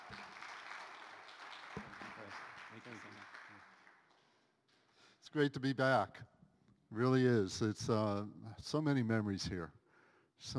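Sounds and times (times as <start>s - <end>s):
church audience applause welcoming a missionary speaker: 0.0s - 4.4s
speech: 2.3s - 3.8s, 5.2s - 6.3s, 6.9s - 9.8s, 10.4s - 10.5s.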